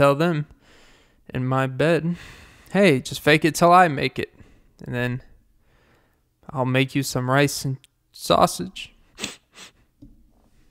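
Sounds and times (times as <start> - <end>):
speech: 0.0 - 0.5, 1.3 - 5.3, 6.5 - 9.4
quiet breathing: 0.5 - 1.3, 2.1 - 2.8, 4.3 - 4.8, 5.4 - 6.4, 9.6 - 10.6
person sniffling: 9.2 - 9.9.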